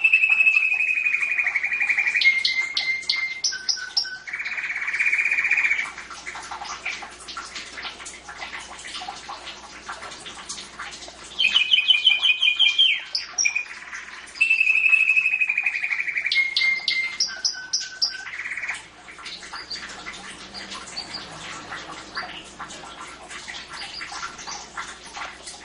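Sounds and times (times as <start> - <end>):
canary singing trills: 0.0 - 5.9, 11.3 - 22.5, 23.6 - 24.7.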